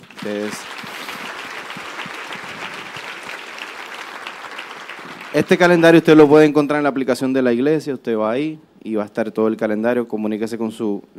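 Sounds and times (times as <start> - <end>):
audience applause: 0.0 - 6.0
speech: 0.2 - 0.8, 5.4 - 11.1.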